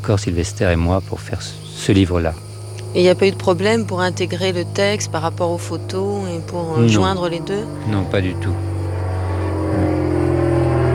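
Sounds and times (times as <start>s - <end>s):
speech: 0.0s - 8.7s
airplane flying overhead: 0.0s - 10.9s.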